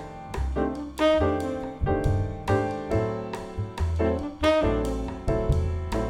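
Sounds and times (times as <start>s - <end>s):
saxophone melody: 0.6s - 2.7s, 4.1s - 6.0s.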